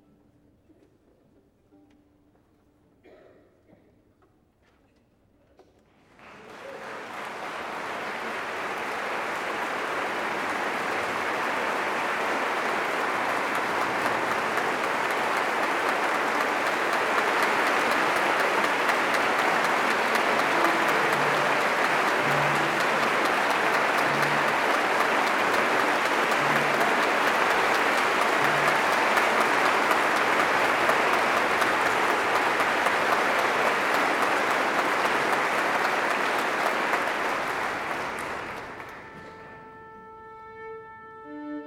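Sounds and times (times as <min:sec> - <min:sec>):
applause: 0:06.0 - 0:39.9
violin tuning: 0:11.9 - 0:35.2, 0:38.6 - 0:41.6.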